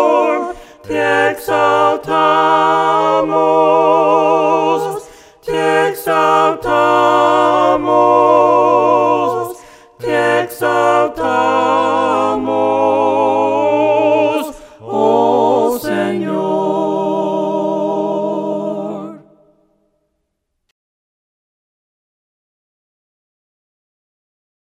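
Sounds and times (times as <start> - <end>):
voices singing hymns a cappella: 0.0 - 19.6.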